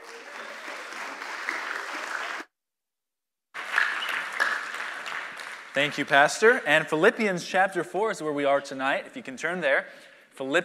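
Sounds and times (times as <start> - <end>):
audience applause at a church service welcoming a guest missionary speaker: 0.0 - 2.5, 3.6 - 6.3
speech: 5.8 - 10.6.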